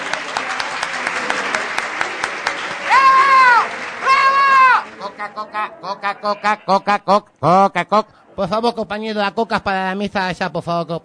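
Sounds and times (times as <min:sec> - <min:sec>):
crowd applause: 0:00.0 - 0:06.8
speech: 0:05.3 - 0:11.0.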